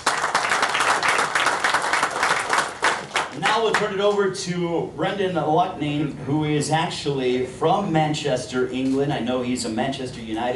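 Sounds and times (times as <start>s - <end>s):
audience applause: 0.0s - 3.8s
speech: 3.6s - 10.5s.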